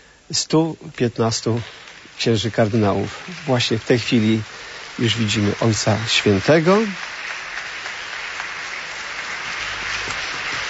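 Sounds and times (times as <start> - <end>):
speech: 0.3 - 7.1
warm applause: 0.9 - 10.6.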